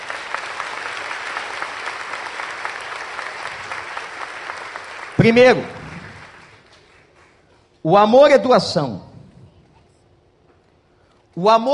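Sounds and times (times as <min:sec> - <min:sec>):
audience applause: 0:00.0 - 0:07.4
speech: 0:05.2 - 0:05.8, 0:07.8 - 0:09.1, 0:11.4 - 0:11.7.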